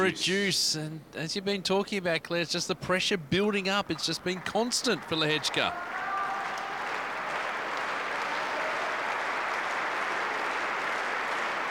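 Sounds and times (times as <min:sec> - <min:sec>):
speech: 0:00.0 - 0:06.1
tennis crowd applauding: 0:03.9 - 0:11.6.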